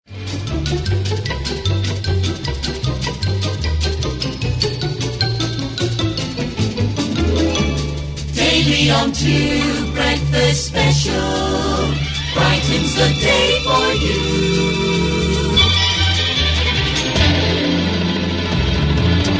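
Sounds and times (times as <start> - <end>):
jingle: 0.3 - 18.3.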